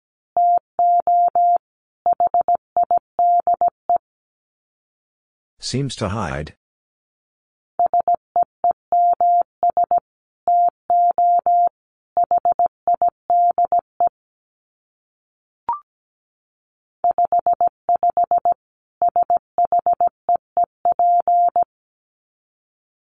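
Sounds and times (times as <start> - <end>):
Morse code tones at 17 wpm: 0.4 - 4.0, 7.8 - 13.8, 17.0 - 20.1, 20.8 - 21.6
speech: 5.6 - 6.6.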